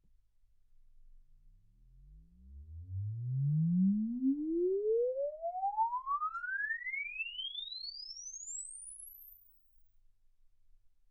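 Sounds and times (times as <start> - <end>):
exponential sine sweep from 10 Hz to 24 kHz: 2.1 - 9.6.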